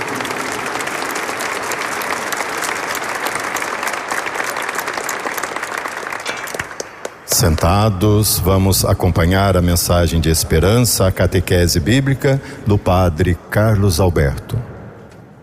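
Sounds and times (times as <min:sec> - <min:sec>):
audience applause: 0:00.0 - 0:08.2
speech: 0:07.4 - 0:14.7.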